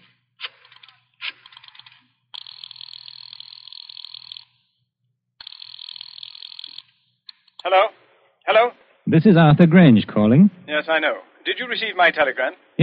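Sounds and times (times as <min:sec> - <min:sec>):
telephone rotary dial whirring: 0:00.0 - 0:07.7
speech: 0:07.6 - 0:12.8.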